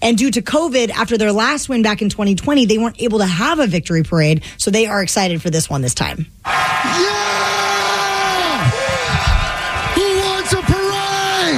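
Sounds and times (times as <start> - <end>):
speech: 0.0 - 7.7
steady roar of crowd noise: 6.5 - 11.5
man's primal scream of celebration: 6.6 - 11.5.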